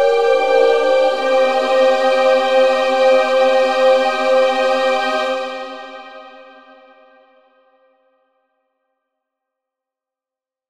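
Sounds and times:
quasi-atonal chanting: 0:00.0 - 0:06.3.

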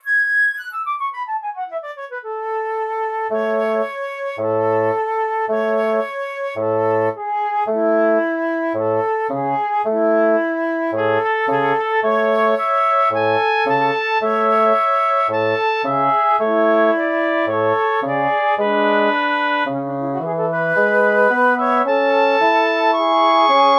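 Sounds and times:
woodwind trio in A major: 0:00.0 - 0:23.7.

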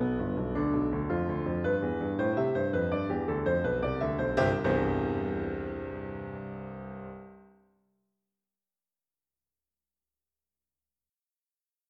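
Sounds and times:
piano pieces: 0:00.0 - 0:07.6.

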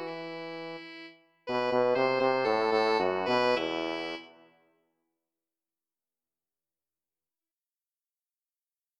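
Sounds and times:
saxophone: 0:00.0 - 0:04.6
horn: 0:00.0 - 0:04.7.

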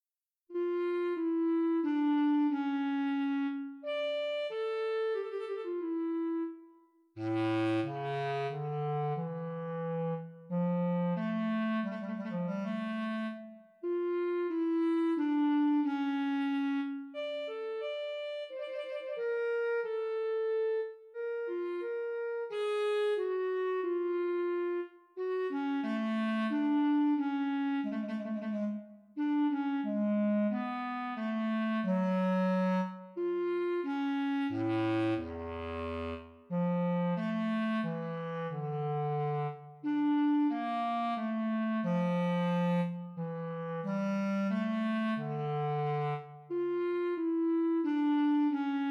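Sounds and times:
bass clarinet solo: 0:00.5 - 0:48.8.

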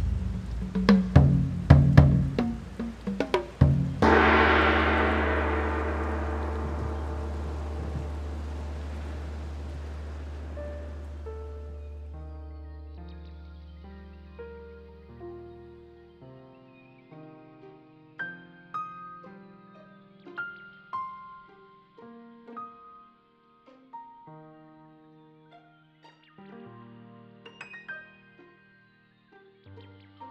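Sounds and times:
raindrops: 0:00.0 - 0:12.1.

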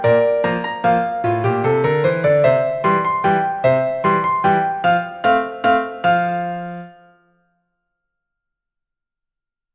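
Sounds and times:
waltz music: 0:00.0 - 0:07.0.

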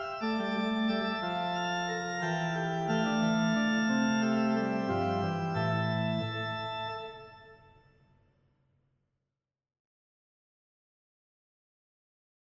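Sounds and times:
fugato music: 0:00.2 - 0:07.2.

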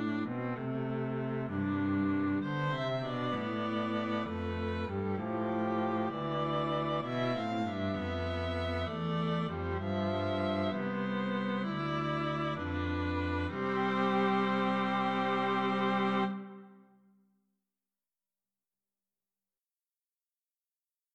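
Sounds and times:
string trio playing: 0:00.0 - 0:16.8.

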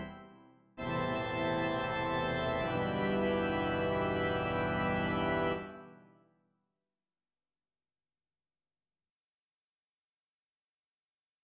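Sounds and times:
accordion solo: 0:00.0 - 0:06.0.

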